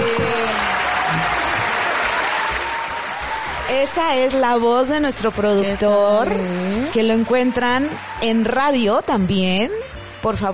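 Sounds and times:
applause sound effect: 0:00.0 - 0:06.0, 0:07.2 - 0:09.3
speech: 0:03.7 - 0:10.5.

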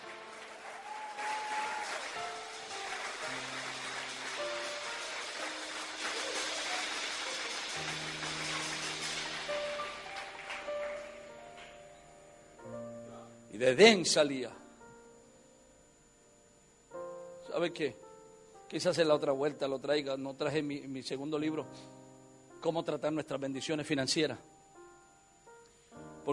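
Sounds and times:
audience clapping: 0:00.0 - 0:11.8
organ or keyboard chords: 0:00.0 - 0:26.3
speech: 0:13.6 - 0:14.6, 0:17.6 - 0:18.0, 0:18.7 - 0:22.0, 0:22.6 - 0:24.5.

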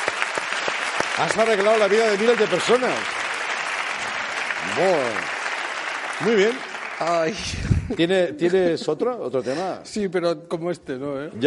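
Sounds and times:
group applause: 0:00.0 - 0:08.1
speech: 0:01.2 - 0:03.2, 0:04.6 - 0:05.3, 0:06.2 - 0:11.4.

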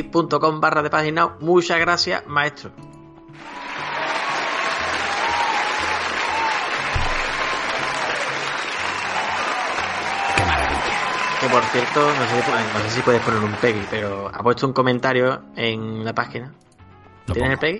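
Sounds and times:
speech: 0:00.1 - 0:03.6, 0:11.4 - 0:16.7, 0:17.3 - 0:17.7
applause sound effect: 0:03.4 - 0:14.2.

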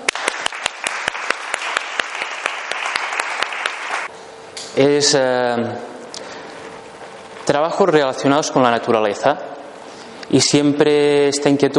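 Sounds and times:
crowd clapping: 0:00.0 - 0:04.1
speech: 0:04.8 - 0:05.9, 0:07.5 - 0:09.5, 0:10.3 - 0:11.7.

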